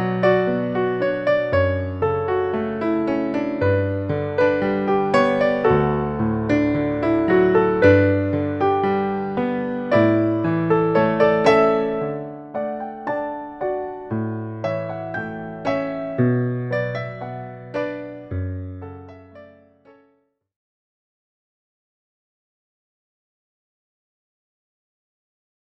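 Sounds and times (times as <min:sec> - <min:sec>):
jazz piano wedding processional: 0:00.0 - 0:20.1.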